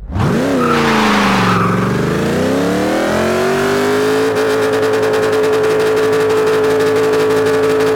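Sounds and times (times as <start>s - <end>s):
vehicles: 0.0s - 7.9s.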